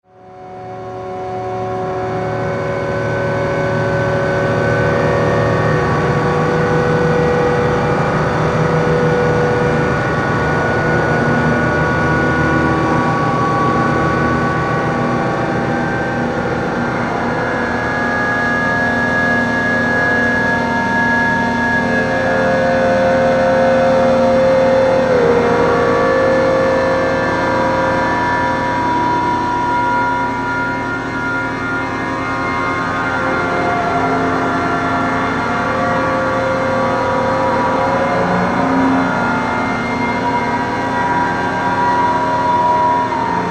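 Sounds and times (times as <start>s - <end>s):
siren: 0.0s - 43.4s.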